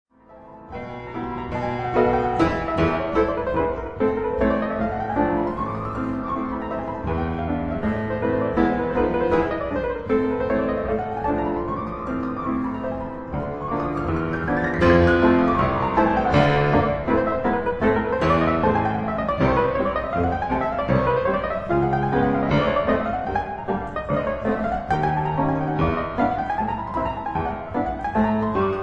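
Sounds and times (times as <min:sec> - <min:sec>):
piano etudes in A minor: 0:00.1 - 0:28.8.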